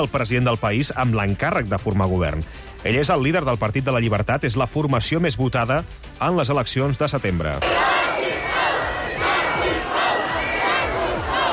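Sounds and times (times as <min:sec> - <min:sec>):
speech: 0:00.0 - 0:08.0
protesters shouting against the Austrian president's decision: 0:07.6 - 0:11.5.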